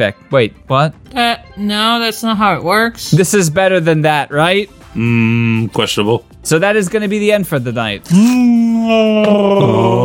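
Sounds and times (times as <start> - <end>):
speech: 0.0 - 10.0
person's Wookiee-like gargly howl: 8.8 - 10.0.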